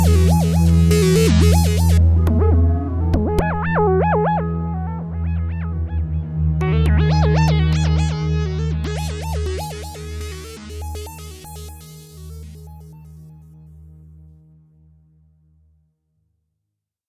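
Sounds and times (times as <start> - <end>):
Prophet-5 synthesizer mix: 0.0 - 13.3.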